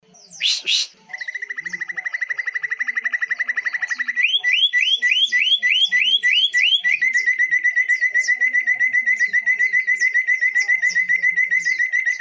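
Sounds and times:
leafbird singing: 0.0s - 12.1s.

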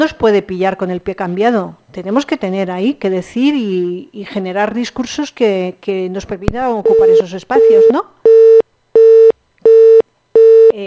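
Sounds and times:
speech: 0.0s - 8.2s
telephone busy tone after a call drops: 6.8s - 10.7s.

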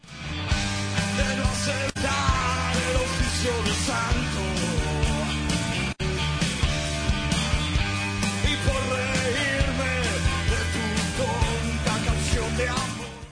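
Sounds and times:
live rock band recording: 0.0s - 13.3s.

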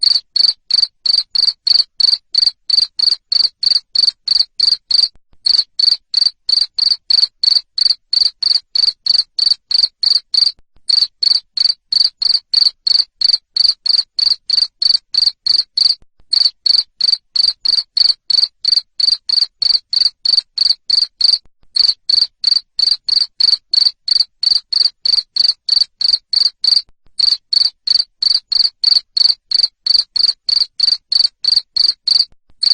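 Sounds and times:
cricket chirping: 0.0s - 32.7s.

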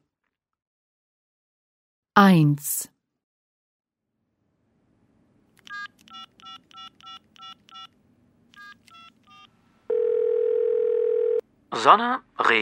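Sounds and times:
speech: 2.2s - 2.9s, 11.7s - 12.6s
telephone number being dialed, touch tones: 5.6s - 11.4s.

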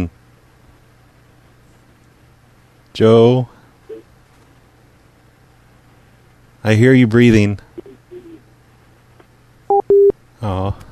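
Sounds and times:
speech: 2.9s - 3.6s, 6.6s - 7.6s, 10.4s - 10.8s
electronic two-tone beep: 9.7s - 10.1s.

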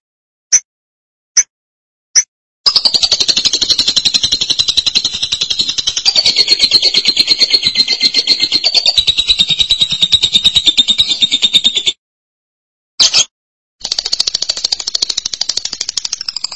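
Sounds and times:
lovebird chattering song: 2.7s - 11.9s, 13.8s - 16.5s.

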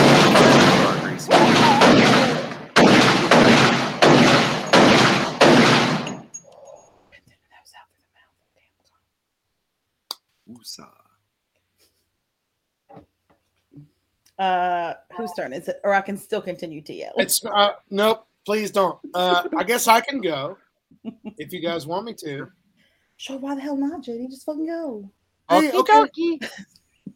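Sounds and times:
gunshot sound effect: 0.0s - 6.4s
speech: 10.6s - 11.0s, 12.9s - 13.1s, 13.8s - 22.6s, 23.2s - 26.8s
brief murmurs: 18.6s - 20.5s, 25.5s - 26.1s
laughter: 18.6s - 22.4s, 25.5s - 26.6s.

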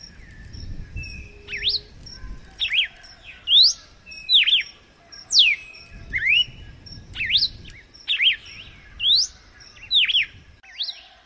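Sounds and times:
Red-cowled cardinal song of clear whistled notes: 0.0s - 11.0s.

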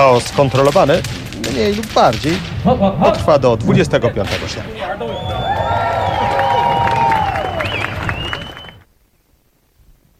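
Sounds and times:
speech: 0.0s - 5.8s
festival crowd cheering and applauding: 4.8s - 8.8s.

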